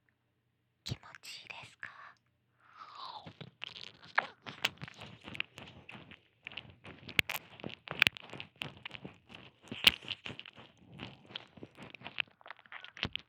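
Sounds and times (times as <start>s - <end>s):
ear licking sounds: 2.8s - 13.2s.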